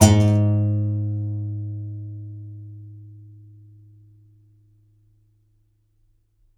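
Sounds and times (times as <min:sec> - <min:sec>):
contrabass balalaika plucked strings: 0:00.0 - 0:04.2.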